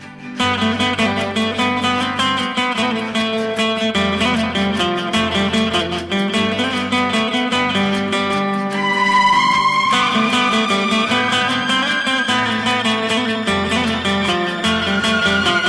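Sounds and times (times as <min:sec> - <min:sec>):
guitar instrumental ringtone: 0:00.0 - 0:15.6.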